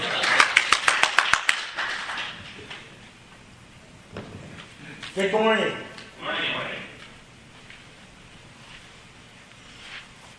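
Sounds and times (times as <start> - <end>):
small audience applauding: 0.0 - 2.6
speech: 5.2 - 6.5.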